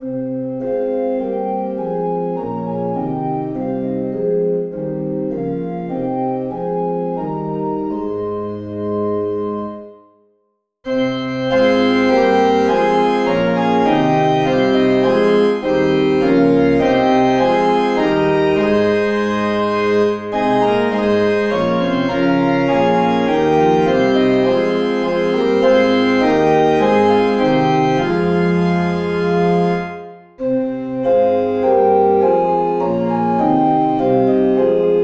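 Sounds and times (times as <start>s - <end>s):
organ playing hymns without words: 0.0s - 10.0s, 10.9s - 35.0s.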